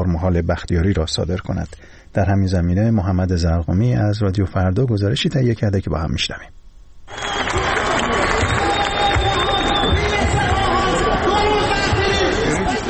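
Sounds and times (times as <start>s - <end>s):
speech: 0.1s - 7.3s
crowd of Isfahan citizens protesting on dry Zayandeh River bed: 7.1s - 12.8s.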